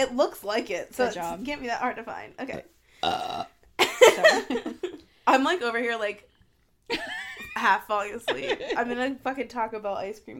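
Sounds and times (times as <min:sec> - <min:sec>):
speech: 0:00.0 - 0:06.3, 0:06.9 - 0:10.3
loud burp: 0:03.0 - 0:03.6
laughter: 0:06.9 - 0:09.0.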